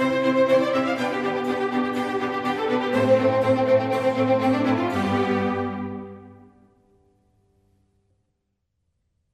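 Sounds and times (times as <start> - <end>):
string orchestra sinfonia in C major: 0.0 - 6.8.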